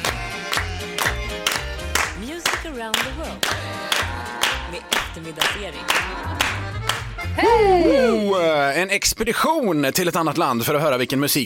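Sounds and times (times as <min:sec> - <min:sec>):
hand claps on the beat: 0:00.0 - 0:07.3
speech: 0:02.8 - 0:03.8, 0:04.7 - 0:11.4.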